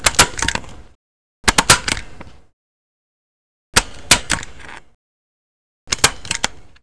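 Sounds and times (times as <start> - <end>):
stapler: 0.0 - 0.6, 1.4 - 2.1, 3.8 - 4.9, 5.9 - 6.7.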